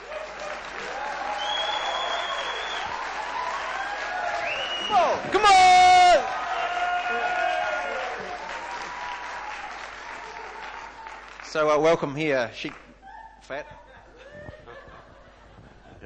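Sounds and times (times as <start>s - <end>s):
audience applauding a guest welcomed on stage: 0.0s - 12.2s
shrill whistle: 1.4s - 2.9s, 4.4s - 5.1s
speech: 4.9s - 5.8s, 11.5s - 12.8s, 13.5s - 13.8s
laughter: 10.0s - 11.2s, 13.0s - 16.0s.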